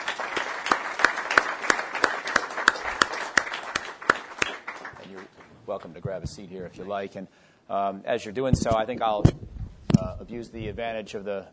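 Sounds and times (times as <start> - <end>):
audience applauding a journalist at a talk: 0.0 - 5.4
speech: 5.7 - 9.4, 10.2 - 11.5.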